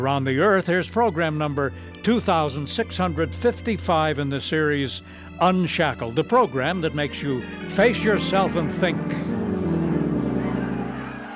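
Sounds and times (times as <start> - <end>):
speech: 0.0 - 9.4
crowd noise: 7.8 - 11.3.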